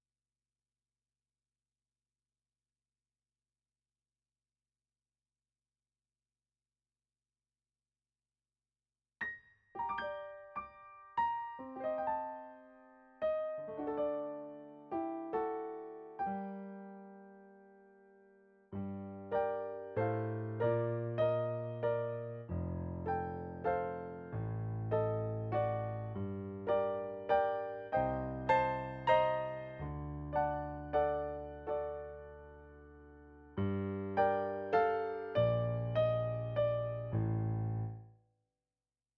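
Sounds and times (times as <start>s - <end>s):
piano: 9.2s - 38.1s.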